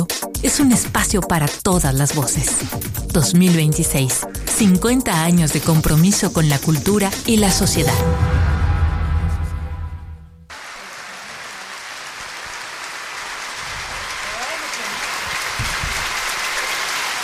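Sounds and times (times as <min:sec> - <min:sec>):
speech: 0:00.4 - 0:08.5
piano encore improvisation on a classical song: 0:07.3 - 0:10.5
audience applauding a piano encore: 0:10.5 - 0:17.2.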